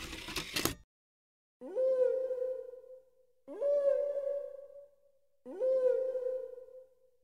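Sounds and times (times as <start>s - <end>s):
whale song recording: 1.6s - 7.1s.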